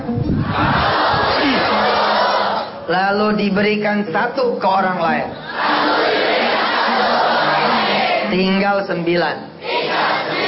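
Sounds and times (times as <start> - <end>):
large crowd shouting and roaring: 0.4 - 2.9, 5.4 - 8.4, 9.6 - 10.4
speech: 2.9 - 6.0, 8.3 - 9.5.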